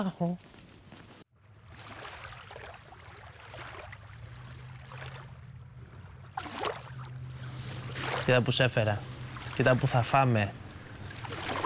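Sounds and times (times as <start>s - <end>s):
speech: 0.0s - 0.7s, 8.3s - 10.6s
sea water lapping in small harbour: 1.4s - 11.6s
steady low hum of engine or harbour noise: 1.4s - 11.6s.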